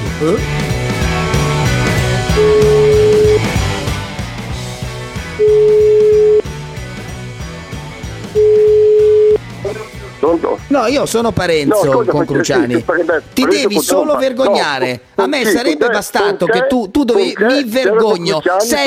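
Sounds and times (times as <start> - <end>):
continuous music: 0.0 - 18.8
speech: 0.2 - 0.8, 2.4 - 2.8, 10.3 - 18.8
telephone dial tone while calling back a number: 2.4 - 3.4, 5.4 - 6.4, 8.4 - 9.4.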